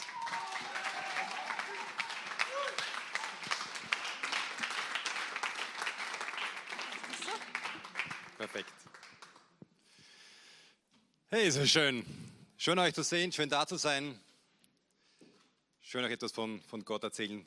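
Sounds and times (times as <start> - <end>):
audience applause: 0.0 - 9.6
speech: 8.4 - 8.9, 11.3 - 14.3, 15.9 - 17.4.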